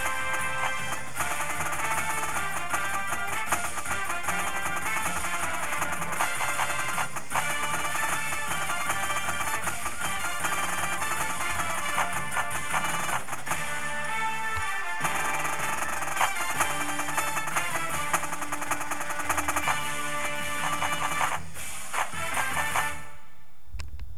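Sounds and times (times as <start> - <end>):
snare drum: 0.0 - 23.2.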